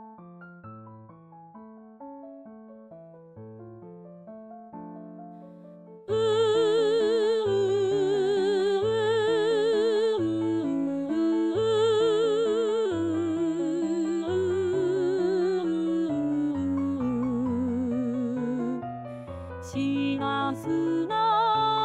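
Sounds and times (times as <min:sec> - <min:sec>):
alto voice singing: 0:06.1 - 0:18.9, 0:19.6 - 0:21.8.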